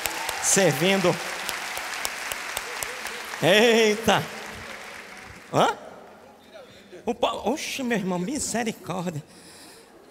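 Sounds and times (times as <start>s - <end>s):
audience applause: 0.0s - 5.7s
speech: 0.5s - 1.3s, 3.4s - 4.4s, 5.5s - 5.8s, 7.1s - 9.4s.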